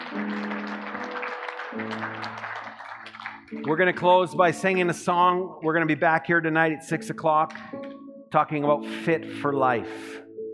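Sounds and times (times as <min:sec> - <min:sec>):
church audience applauding: 0:00.0 - 0:04.9
speech: 0:01.8 - 0:02.3, 0:03.6 - 0:10.2.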